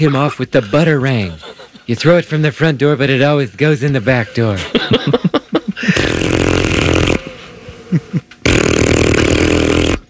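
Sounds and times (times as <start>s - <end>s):
laughter: 0.0s - 2.0s, 4.2s - 6.1s, 7.7s - 8.4s
speech: 0.0s - 6.0s
fart noises as a phone ringing: 5.9s - 7.4s, 8.0s - 10.0s.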